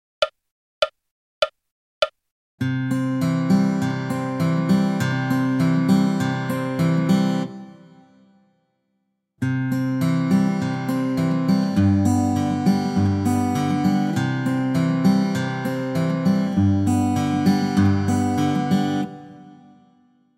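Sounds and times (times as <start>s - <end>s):
fingerstyle guitar: 2.6s - 8.4s, 9.4s - 20.2s.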